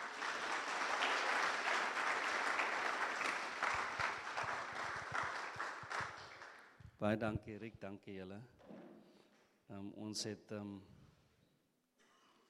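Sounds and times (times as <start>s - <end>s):
audience clapping: 0.0s - 6.8s
speech: 7.0s - 8.7s, 9.7s - 11.0s.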